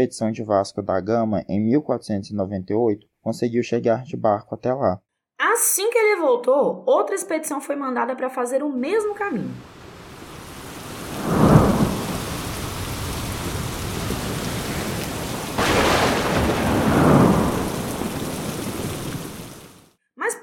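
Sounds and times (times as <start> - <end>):
speech: 0.0 - 9.8
rain: 9.6 - 19.9
thunder: 10.1 - 19.8.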